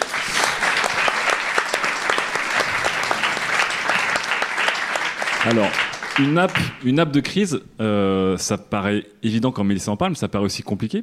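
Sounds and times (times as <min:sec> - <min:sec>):
audience applause: 0:00.0 - 0:06.9
speech: 0:05.5 - 0:11.0.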